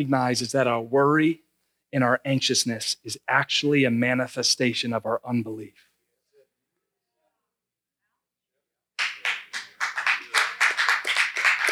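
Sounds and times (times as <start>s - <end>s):
speech: 0.0s - 5.9s
audience clapping: 9.0s - 11.6s.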